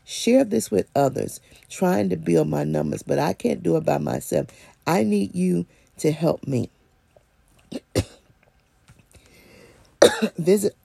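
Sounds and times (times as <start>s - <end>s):
speech: 0.2s - 6.8s, 10.2s - 10.8s
person coughing after something went down the wrong pipe: 7.7s - 8.3s, 10.0s - 10.5s.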